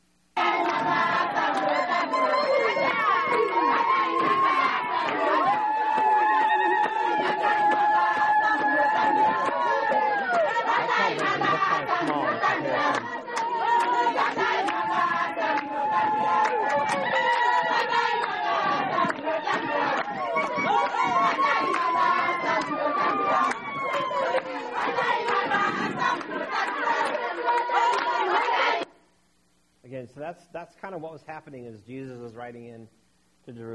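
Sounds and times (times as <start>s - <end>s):
village crowd shouting, chanting and singing: 0.4s - 28.9s
laughter: 1.6s - 14.7s
speech: 33.5s - 33.7s.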